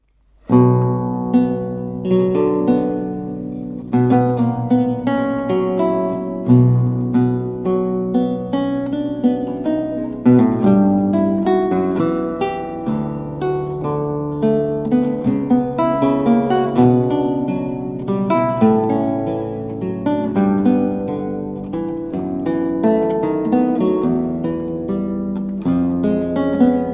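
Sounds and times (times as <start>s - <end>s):
baroque lute prelude in C minor: 0.4s - 26.9s.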